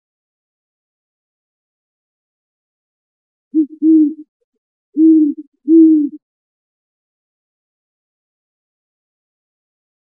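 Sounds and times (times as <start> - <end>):
great horned owl hooting: 3.6 - 4.2, 5.0 - 6.2.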